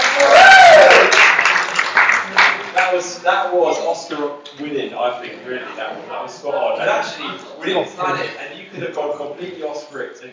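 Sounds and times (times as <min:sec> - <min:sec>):
audience applause: 0:00.0 - 0:03.2
speech: 0:03.3 - 0:10.3.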